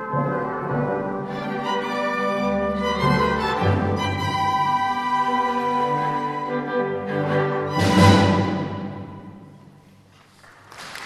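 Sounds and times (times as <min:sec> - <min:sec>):
orchestra playing children's song: 0:00.0 - 0:09.7.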